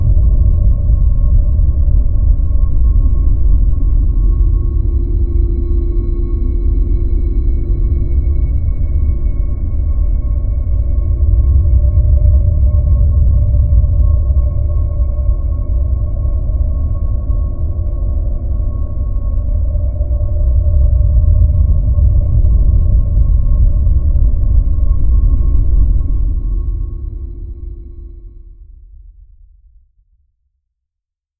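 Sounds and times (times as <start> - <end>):
ghostly drone: 0.0 - 29.5.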